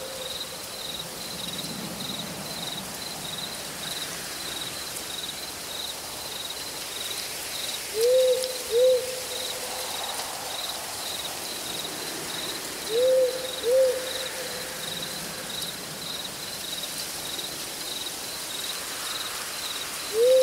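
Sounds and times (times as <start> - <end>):
soft hiss like light rain or wind in branches: 0.0 - 20.4
owls hooting in a night forest: 12.9 - 14.6, 20.1 - 20.4.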